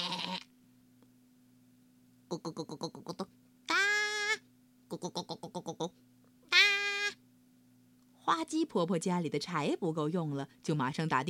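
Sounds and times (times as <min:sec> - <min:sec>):
goat bleating: 0:00.0 - 0:00.5, 0:03.7 - 0:04.4, 0:06.5 - 0:07.2
speech: 0:02.3 - 0:03.2, 0:08.4 - 0:11.2.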